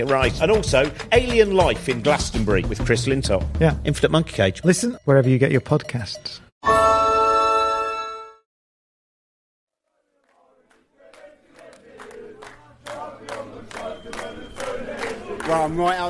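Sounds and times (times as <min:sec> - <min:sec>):
sharp rhythmic claps: 0:00.0 - 0:04.5, 0:10.2 - 0:16.0
speech: 0:00.0 - 0:06.9, 0:15.5 - 0:16.0
football ultras crowd chanting and singing: 0:10.0 - 0:16.0.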